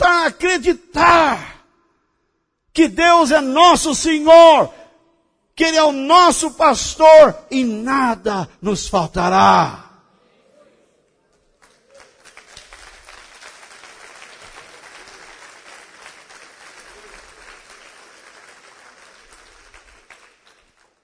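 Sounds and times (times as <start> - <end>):
speech: 0.3 - 1.5, 2.8 - 4.8, 5.6 - 9.8
audience clapping hands: 11.3 - 21.0.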